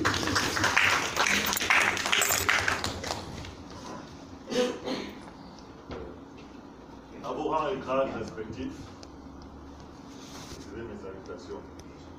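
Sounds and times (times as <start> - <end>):
audience applause: 0.0 - 3.3
speech: 7.7 - 9.0.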